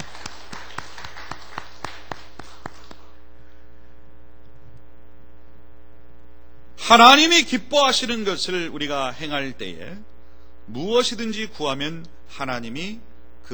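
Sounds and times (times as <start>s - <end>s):
audience applause: 0.0s - 3.2s
steady low hum: 0.0s - 13.5s
speech: 6.9s - 10.1s, 10.7s - 13.5s.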